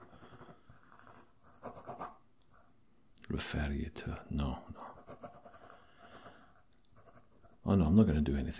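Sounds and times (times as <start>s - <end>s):
pen scratching on paper writing notes for a patient's record: 0.0s - 2.2s, 4.9s - 8.0s
speech: 3.3s - 5.0s, 7.7s - 8.5s.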